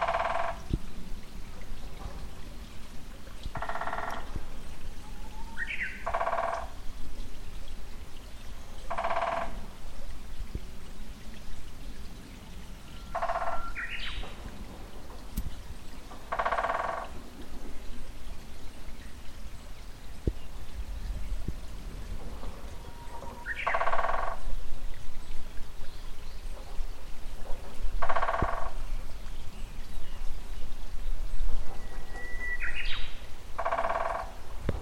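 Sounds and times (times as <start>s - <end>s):
two great spotted woodpeckers drumming on an April morning walk: 0.0s - 0.6s, 3.5s - 4.3s, 6.0s - 6.7s, 8.9s - 9.6s, 13.1s - 14.3s, 16.2s - 17.2s, 23.2s - 24.4s, 28.0s - 28.8s, 33.6s - 34.3s
water flowing in an irrigation channel: 0.0s - 34.8s.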